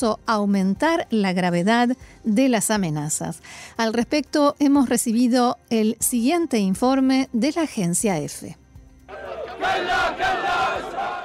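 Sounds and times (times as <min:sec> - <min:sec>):
speech: 0:00.0 - 0:10.9
funeral crowd chanting slogans: 0:09.1 - 0:11.2.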